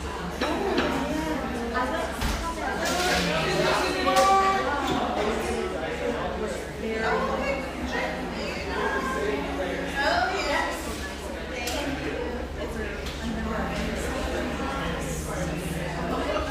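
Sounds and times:
murmur of voices in an espresso shop: 0.0s - 16.5s
low hum: 12.6s - 16.5s.

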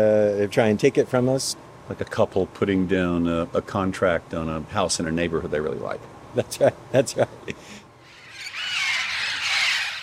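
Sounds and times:
speech: 0.0s - 7.8s
red-crowned parrots screeching and squawking: 8.0s - 10.0s.

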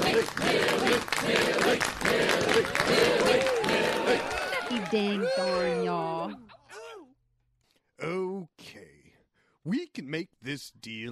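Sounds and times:
large excited crowd cheering and applauding: 0.0s - 6.4s
excited shouts and whoops: 3.4s - 6.8s
speech: 4.9s - 5.5s, 9.6s - 11.1s.

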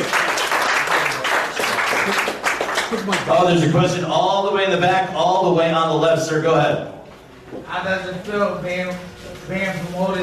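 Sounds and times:
audience applause: 0.0s - 3.3s
speech: 3.0s - 7.0s, 7.6s - 10.2s.

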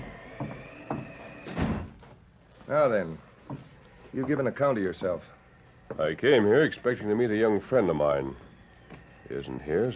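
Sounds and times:
door being closed: 0.0s - 2.1s
speech: 2.7s - 5.4s, 6.0s - 8.4s, 9.3s - 9.9s.

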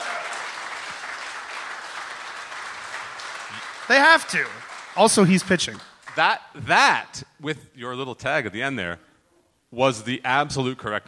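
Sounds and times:
applause: 0.0s - 6.3s
speech: 3.9s - 9.1s, 9.7s - 11.0s.

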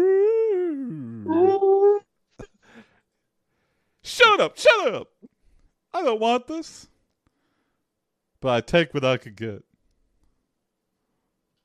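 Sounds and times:
people imitating whale noises: 0.0s - 2.0s
speech: 4.4s - 5.1s, 6.0s - 6.9s, 8.4s - 9.7s.

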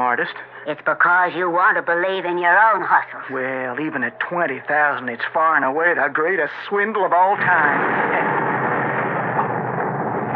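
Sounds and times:
speech: 0.1s - 8.3s
thunder: 7.4s - 10.3s.

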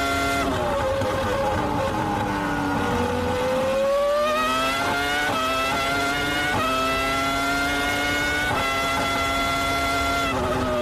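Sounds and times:
Formula One race car engine whine: 0.0s - 10.8s.

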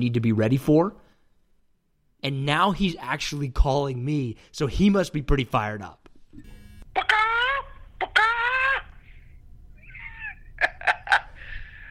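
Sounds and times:
speech: 0.0s - 1.0s, 2.2s - 7.1s
voice imitating a chicken's bawk: 7.0s - 9.0s.

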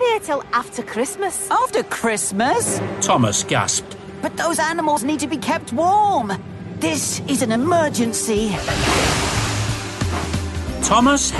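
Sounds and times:
speech: 0.2s - 9.2s, 10.9s - 11.3s
stormy sea waves: 8.6s - 10.7s.

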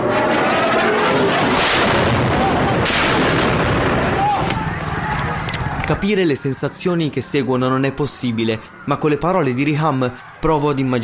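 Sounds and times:
aerial bombing blasts: 0.0s - 5.5s
heavy rumbling: 0.0s - 5.8s
crackling explosions: 0.0s - 5.9s
speech: 5.9s - 11.0s.

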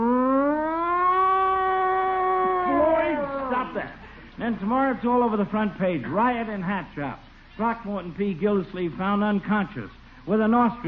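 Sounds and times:
riot squad police siren wailing: 0.0s - 4.0s
speech: 3.7s - 10.8s.

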